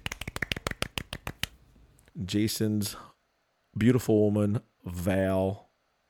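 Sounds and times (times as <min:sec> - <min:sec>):
quiet polite golf clapping: 0:00.0 - 0:01.6
speech: 0:02.2 - 0:03.1, 0:03.8 - 0:05.6.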